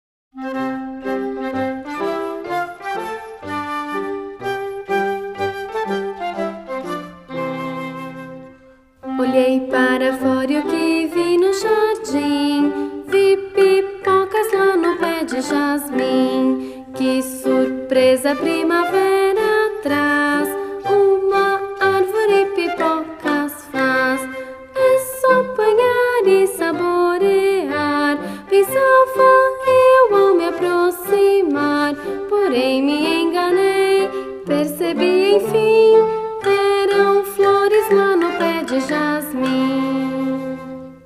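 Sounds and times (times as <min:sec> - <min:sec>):
Portuguese song with words and music: 0:00.4 - 0:41.0.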